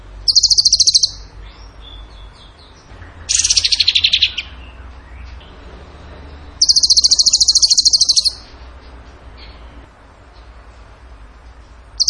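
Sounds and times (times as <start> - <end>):
bird stuttering trills: 0.3 - 1.3, 3.3 - 4.6, 6.6 - 8.5.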